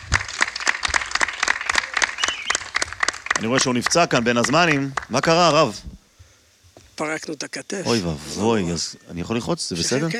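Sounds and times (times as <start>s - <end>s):
audience applause: 0.0s - 5.3s
speech: 3.4s - 5.9s, 7.0s - 10.1s.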